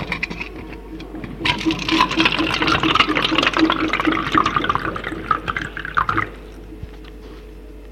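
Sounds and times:
orange juice poured into a glass on a bedside table: 1.2 - 7.0.

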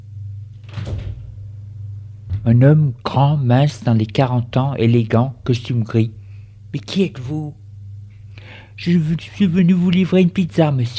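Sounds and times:
steady low hum: 0.0 - 10.9
door being opened: 0.5 - 1.4, 2.2 - 2.6
speech: 2.4 - 7.6, 8.5 - 10.9.

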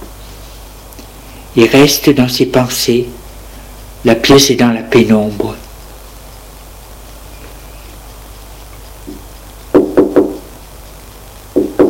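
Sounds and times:
speech: 1.6 - 3.2, 4.0 - 5.6
knocking on a door: 9.1 - 10.5, 11.6 - 11.8.

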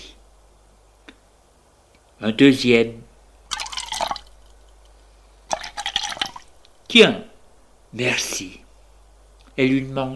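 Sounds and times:
speech: 2.2 - 3.0, 6.9 - 7.2, 7.9 - 8.6, 9.6 - 10.1
pouring scotch into a glass: 3.5 - 4.3, 5.5 - 6.5.

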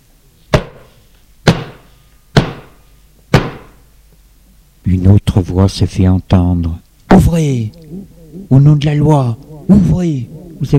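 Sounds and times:
heavy knocks on a door: 1.5 - 1.8, 2.4 - 3.7
speech: 4.9 - 10.7.

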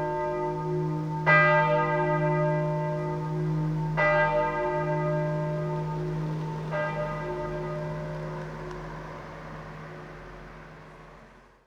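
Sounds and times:
church bells in Sail-sous-Couzan: 0.0 - 11.0.

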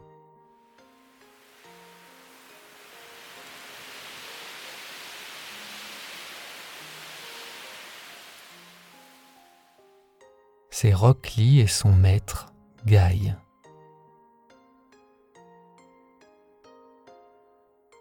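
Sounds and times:
small tornado wind whooshing: 1.6 - 9.3
speech: 10.8 - 13.4.

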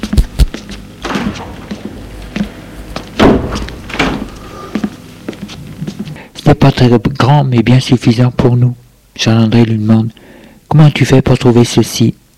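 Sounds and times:
door closing: 1.0 - 5.1
speech: 6.6 - 12.2.

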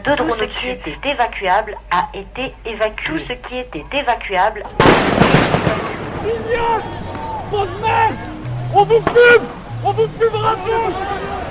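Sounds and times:
speech: 0.0 - 11.3
gendarmes' grenades exploding at a protest: 4.8 - 7.2.

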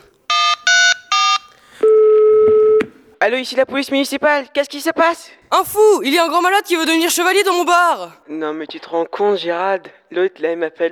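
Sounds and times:
electronic phone keypad tones of a number being dialed: 0.3 - 2.9
speech: 3.2 - 10.9.

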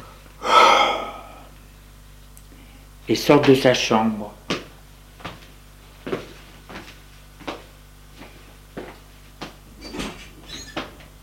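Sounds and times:
person breathing deeply: 0.0 - 1.6
speech: 3.1 - 4.4.

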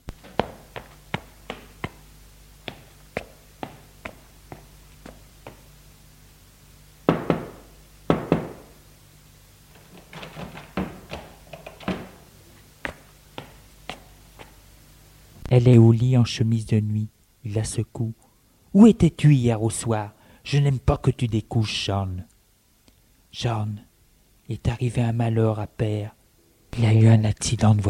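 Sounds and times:
knocking on a bedroom door: 7.1 - 8.7, 10.5 - 12.2
speech: 15.5 - 18.2, 18.8 - 22.3, 23.3 - 23.9, 24.5 - 27.8.

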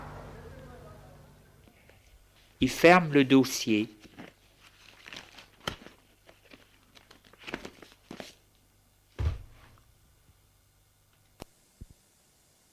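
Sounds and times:
speech: 2.6 - 4.1
paper advertisement crinkling, taken from a pocket and unfolded: 4.0 - 8.5
soft heavy thump: 9.2 - 9.7.

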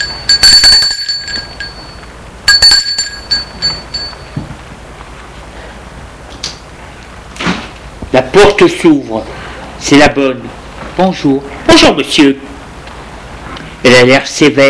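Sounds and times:
doorbell ringing: 0.0 - 4.5
speech: 8.4 - 12.4, 13.8 - 14.6.

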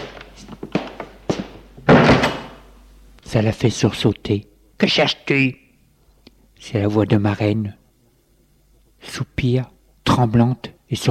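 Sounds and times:
door closing with heavy thud: 0.0 - 2.6
speech: 3.3 - 5.6, 6.6 - 7.8, 9.0 - 11.0.

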